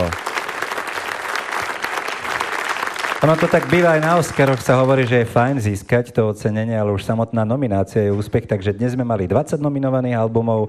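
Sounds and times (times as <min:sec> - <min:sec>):
audience applause: 0:00.0 - 0:05.6
speech: 0:03.2 - 0:10.6.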